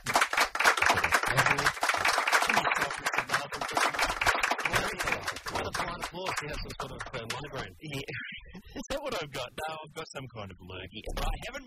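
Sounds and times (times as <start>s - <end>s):
polite applause: 0.0s - 7.5s
speech: 6.3s - 8.2s, 8.8s - 11.6s.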